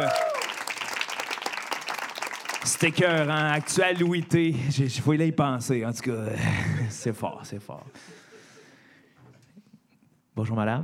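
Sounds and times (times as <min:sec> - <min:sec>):
audience applause: 0:00.0 - 0:04.6
speech: 0:02.6 - 0:08.2, 0:10.4 - 0:10.8
laughter: 0:06.3 - 0:09.2.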